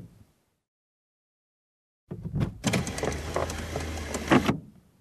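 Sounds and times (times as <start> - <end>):
automatic seat belt buckling and unbuckling: 2.2 - 4.7.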